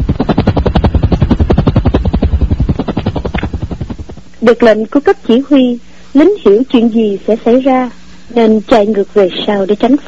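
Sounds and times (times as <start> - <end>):
aircraft flying overhead: 0.0 - 4.3
speech: 4.4 - 10.0.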